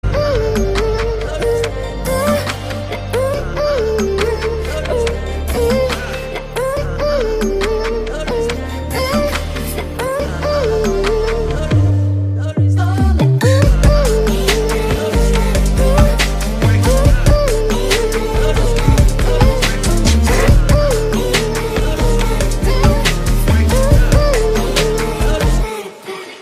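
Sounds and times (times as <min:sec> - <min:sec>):
Telugu background music: 0:00.0 - 0:26.4.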